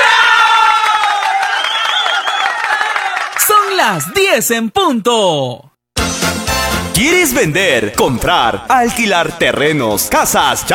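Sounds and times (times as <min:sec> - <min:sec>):
audience applause: 0:00.1 - 0:04.2
speech: 0:03.8 - 0:05.7, 0:07.0 - 0:10.7.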